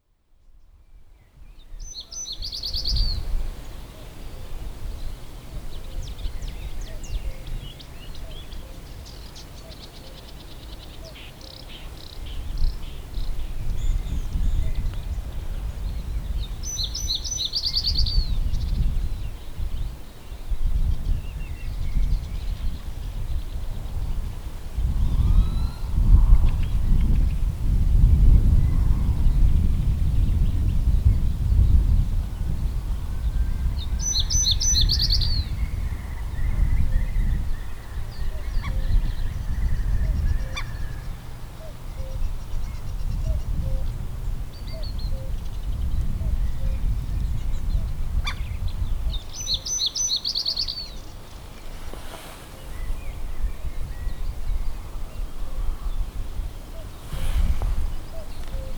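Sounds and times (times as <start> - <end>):
reed bunting birds: 1.2 - 27.5, 28.5 - 58.7.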